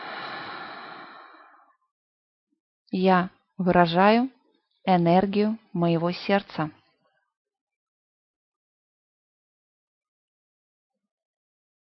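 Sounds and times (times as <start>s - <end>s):
person breathing during a guided heart-breathing meditation: 0.0s - 1.8s
speech: 2.9s - 6.8s.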